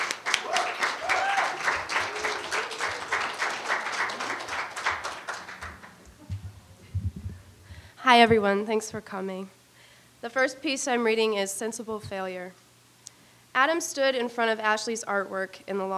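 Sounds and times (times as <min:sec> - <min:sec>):
audience applauding a reader at a flash fiction reading: 0:00.0 - 0:06.7
speech: 0:08.1 - 0:09.6, 0:10.2 - 0:12.6, 0:13.6 - 0:15.9.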